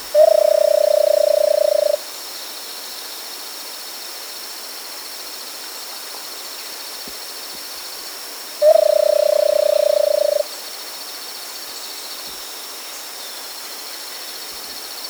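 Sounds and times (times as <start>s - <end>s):
versicolored barbet giving a low purring trill in South America: 0.1s - 2.0s, 8.6s - 10.4s.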